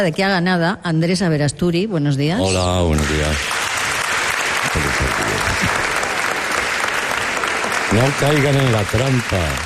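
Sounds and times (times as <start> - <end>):
speech: 0.0 - 3.6, 4.7 - 5.2, 7.9 - 9.6
audience applauding: 2.7 - 9.6.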